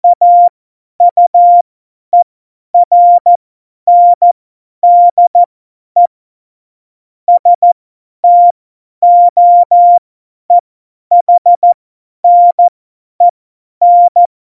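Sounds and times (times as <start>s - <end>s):
CW Morse code beeps: 0.0s - 1.6s, 2.8s - 6.1s, 7.3s - 10.0s, 11.1s - 14.3s.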